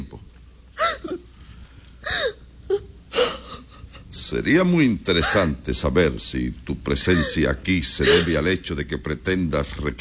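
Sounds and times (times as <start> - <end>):
woman crying and sobbing: 0.8 - 1.4, 2.0 - 4.2, 5.1 - 5.6, 7.0 - 8.5
speech: 4.3 - 9.9.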